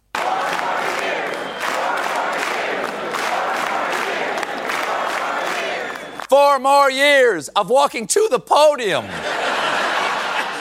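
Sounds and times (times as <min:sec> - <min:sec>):
large crowd chanting in unison: 0:00.0 - 0:06.3
crowd cheering: 0:00.0 - 0:07.3, 0:09.0 - 0:10.5
speech: 0:06.4 - 0:09.4
laughter: 0:08.9 - 0:10.5.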